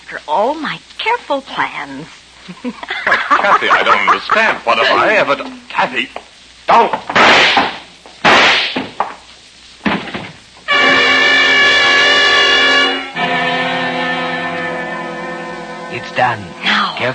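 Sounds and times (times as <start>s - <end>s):
speech: 0.1s - 7.5s, 16.0s - 17.1s
laughter: 2.4s - 5.4s
gunshots: 7.1s - 9.0s
sustained harmonic blare: 10.7s - 17.1s.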